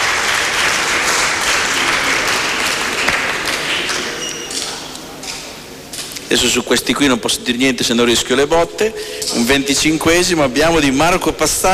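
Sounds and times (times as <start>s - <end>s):
audience applause: 0.0s - 5.0s
speech: 6.3s - 11.7s.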